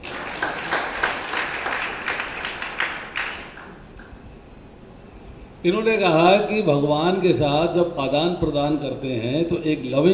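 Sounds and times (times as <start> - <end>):
audience clapping: 0.0 - 4.2
speech: 5.6 - 10.1.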